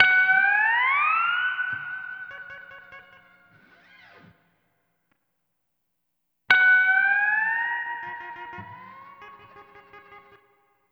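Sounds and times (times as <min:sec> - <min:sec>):
steel guitar in F sharp: 0:00.0 - 0:04.5, 0:06.7 - 0:10.6.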